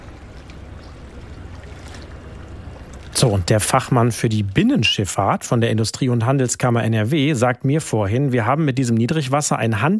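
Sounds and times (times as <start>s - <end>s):
water lapping at Rhine riverbank steps in Duisburg-Ruhrort: 0.0s - 5.7s
speech: 3.2s - 9.9s.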